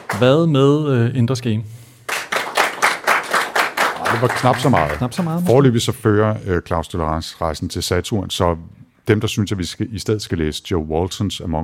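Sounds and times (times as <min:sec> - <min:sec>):
audience clapping in unison to vote: 0:00.0 - 0:00.5, 0:02.0 - 0:05.7
speech: 0:00.1 - 0:01.8, 0:04.1 - 0:11.6.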